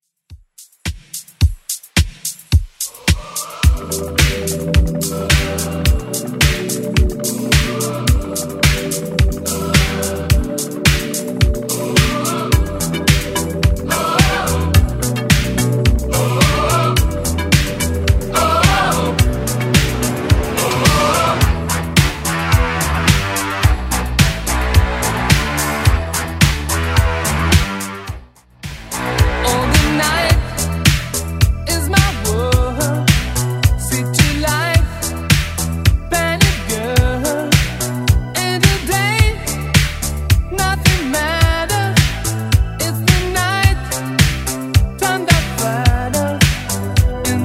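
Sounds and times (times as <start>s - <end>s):
80s beat: 0.3s - 47.4s.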